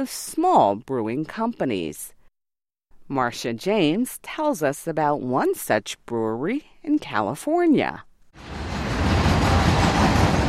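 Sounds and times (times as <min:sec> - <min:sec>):
speech: 0:00.0 - 0:02.2, 0:03.1 - 0:08.5
passenger train passing Golden Road Brewery in Los Angeles: 0:08.4 - 0:10.4.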